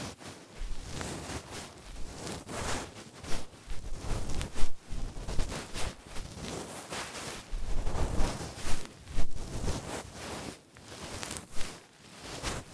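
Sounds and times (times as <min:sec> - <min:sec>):
ear cleaning recorded with binaural microphone: 0:00.6 - 0:10.2, 0:10.9 - 0:12.7.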